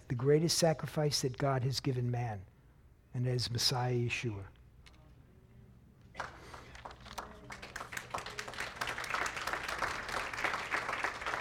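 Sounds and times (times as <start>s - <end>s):
speech: 0.1s - 2.5s, 3.1s - 4.6s
crowd applauding: 6.2s - 11.3s.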